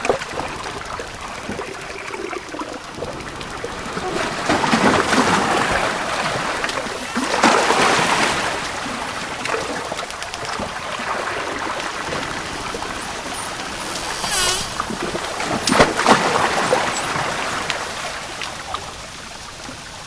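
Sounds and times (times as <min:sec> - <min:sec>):
ocean waves on a shoreline at a port: 0:00.8 - 0:19.5.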